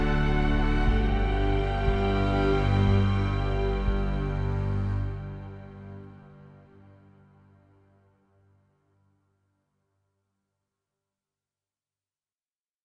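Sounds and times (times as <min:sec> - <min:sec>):
adoration ambient music: 0:00.0 - 0:08.3.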